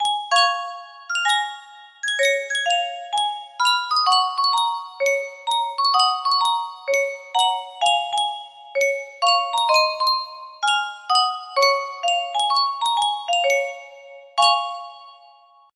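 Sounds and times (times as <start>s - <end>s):
Yunsheng custom tune music box: 0.0s - 15.7s.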